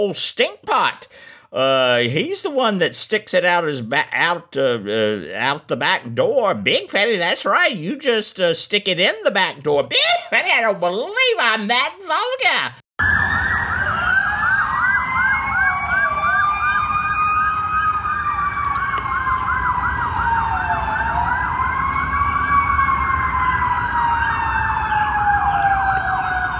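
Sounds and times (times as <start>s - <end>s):
speech: 0.0s - 13.1s
emergency vehicle sirens wailing: 13.0s - 26.5s
low rumble of traffic: 13.1s - 26.5s.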